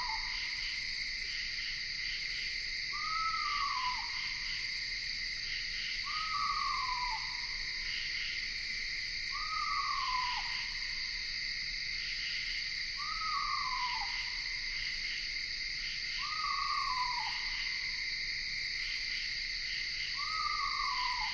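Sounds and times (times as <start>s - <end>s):
insects in Ithaca New York: 0.0s - 21.3s
screech owl calling in Ithaca New York: 2.9s - 4.2s, 6.0s - 7.5s, 9.3s - 10.9s, 13.0s - 14.3s, 16.2s - 17.8s, 20.2s - 21.3s.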